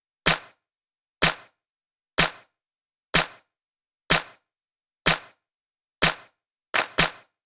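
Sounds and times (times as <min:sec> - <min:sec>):
hand clap: 0:00.3 - 0:00.6, 0:01.2 - 0:01.5, 0:02.2 - 0:02.4, 0:03.2 - 0:03.4, 0:04.1 - 0:04.4, 0:05.1 - 0:05.3, 0:06.0 - 0:07.4.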